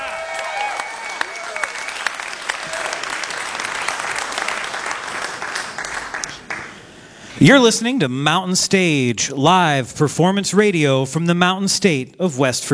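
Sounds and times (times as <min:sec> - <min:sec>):
whoops and shouts: 0:00.0 - 0:01.9
crowd clapping: 0:00.0 - 0:06.9
speech: 0:07.4 - 0:12.7.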